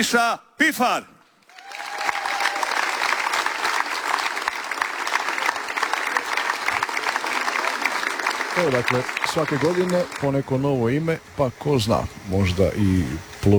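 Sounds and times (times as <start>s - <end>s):
speech: 0.0s - 1.1s, 8.6s - 13.5s
festival audience applause at a song festival: 1.5s - 11.8s.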